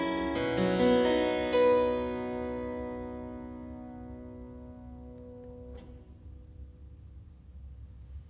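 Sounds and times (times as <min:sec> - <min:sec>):
prelude in C major on keyboard: 0:00.0 - 0:05.8.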